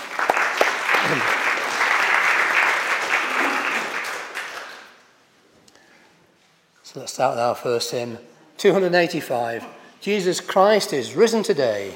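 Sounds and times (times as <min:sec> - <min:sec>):
audience applause: 0:00.0 - 0:05.0
speech: 0:07.0 - 0:11.9.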